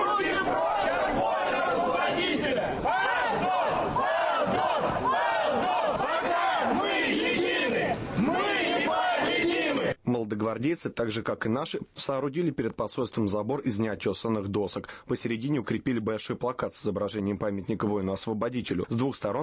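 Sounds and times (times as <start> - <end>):
dense crowd of protesters shouting: 0.0 - 10.0
speech: 10.4 - 19.4.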